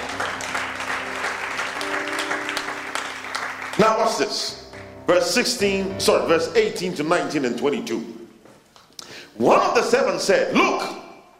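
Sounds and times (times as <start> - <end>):
audience clapping: 0.0 - 5.2
speech: 4.1 - 8.2, 9.4 - 11.0.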